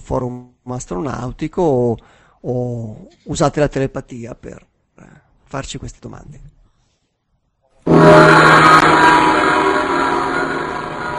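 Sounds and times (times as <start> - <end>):
speech: 0.1 - 6.6
powerful gong strike: 7.9 - 11.1.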